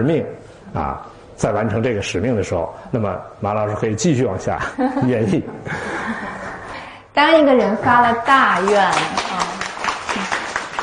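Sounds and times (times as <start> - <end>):
speech: 0.0 - 6.4, 7.2 - 9.4
audience applause: 8.7 - 10.8.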